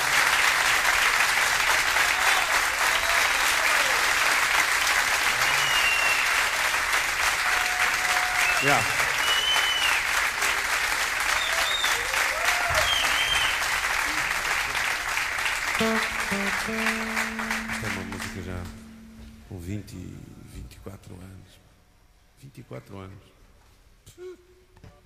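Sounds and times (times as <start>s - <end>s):
crowd applause: 0.0s - 18.9s
faint whistles: 5.4s - 6.4s, 8.4s - 10.1s, 11.4s - 12.0s, 12.8s - 13.6s
speech: 8.6s - 9.0s, 19.7s - 21.7s, 22.4s - 23.4s.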